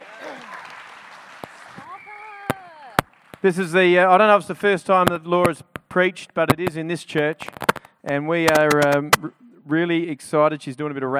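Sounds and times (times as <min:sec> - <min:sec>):
audience applause: 0:00.0 - 0:03.5
speech: 0:03.4 - 0:11.1.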